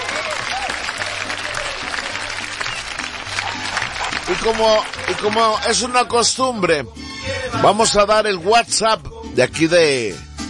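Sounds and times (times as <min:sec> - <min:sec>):
applause: 0:00.0 - 0:06.2
speech: 0:04.3 - 0:10.3.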